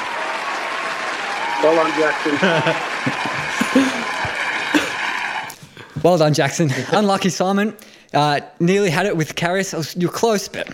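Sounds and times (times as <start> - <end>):
group clapping: 0.0 - 6.0
speech: 1.6 - 4.2, 6.0 - 10.7
laughter: 1.9 - 5.5, 6.4 - 7.5.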